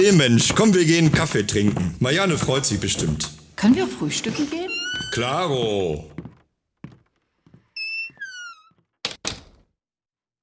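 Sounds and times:
speech: 0.0 - 6.1
door opening: 2.7 - 6.3, 7.8 - 9.5.

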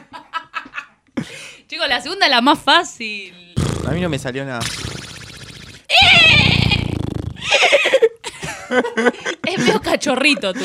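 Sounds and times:
speech: 1.8 - 5.0, 8.7 - 10.6
person imitating horse whinny: 5.9 - 7.1.

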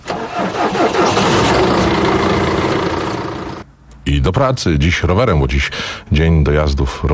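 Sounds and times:
engine cranking, starting and idling: 0.0 - 3.6
speech: 4.1 - 7.1.

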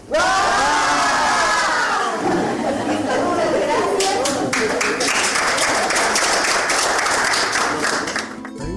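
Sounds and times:
group of young people shouting together: 0.0 - 4.5
excited chatter: 0.1 - 5.0
laughter: 0.4 - 6.4
scattered clapping: 3.7 - 8.6.

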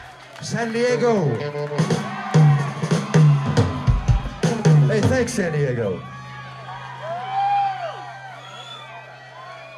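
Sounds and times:
live audience murmuring and cheering: 0.0 - 9.7
speech: 0.4 - 2.2, 5.0 - 6.2
person whooping: 7.0 - 9.0.

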